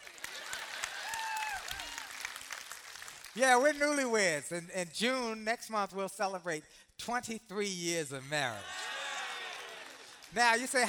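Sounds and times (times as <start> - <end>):
audience clapping: 0.0 - 3.9, 8.8 - 10.8
speech: 3.4 - 8.8, 10.3 - 10.8.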